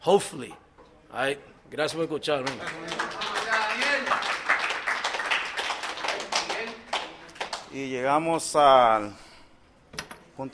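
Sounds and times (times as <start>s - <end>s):
speech: 0.0s - 3.2s, 7.7s - 9.2s, 10.4s - 10.5s
crowd clapping: 2.4s - 7.7s.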